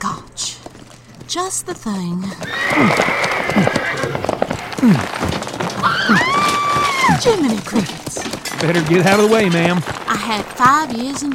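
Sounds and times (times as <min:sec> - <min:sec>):
horse hooves clip-clopping: 0:00.0 - 0:11.3
speech: 0:01.3 - 0:04.2, 0:04.8 - 0:05.4, 0:07.2 - 0:11.3
horse neighing and whinnying: 0:02.4 - 0:11.3.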